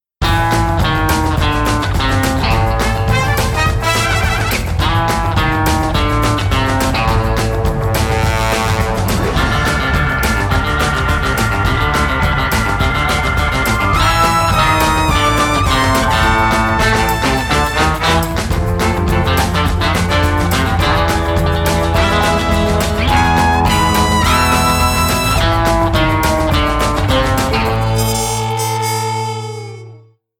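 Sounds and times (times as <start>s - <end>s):
instrumental end theme music: 0.2s - 30.1s.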